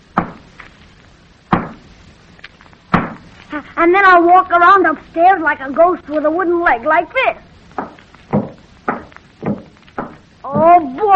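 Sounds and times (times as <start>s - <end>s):
speech: 3.7s - 7.5s
hammer rapping on a wall: 7.8s - 10.8s.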